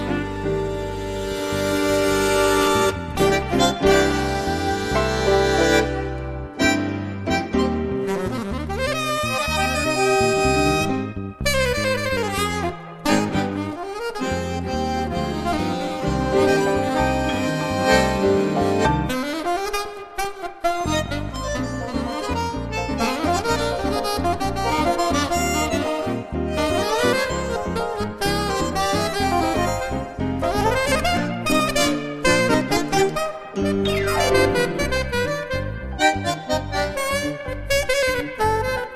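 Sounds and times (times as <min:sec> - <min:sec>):
musical trio: 0:00.0 - 0:38.9.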